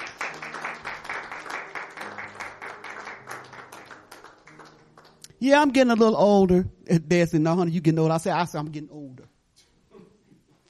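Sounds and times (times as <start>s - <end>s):
audience clapping hands: 0.0s - 5.4s
speech: 5.4s - 9.0s.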